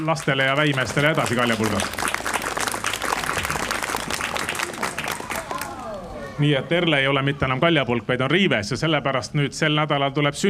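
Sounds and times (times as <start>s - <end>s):
speech: 0.0s - 2.1s, 6.4s - 10.4s
audience applauding newlyweds: 0.0s - 6.2s.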